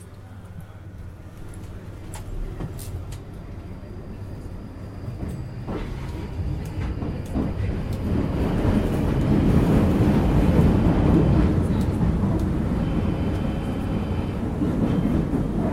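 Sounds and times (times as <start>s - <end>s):
train rumbling: 0.0s - 15.7s
faint high whine: 12.8s - 15.1s.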